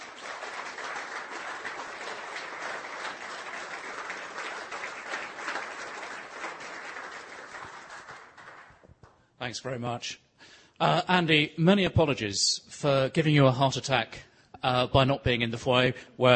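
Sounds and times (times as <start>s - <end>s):
audience applause welcoming a theologian to the stage: 0.0s - 8.9s
speech: 9.4s - 10.2s, 10.8s - 16.3s.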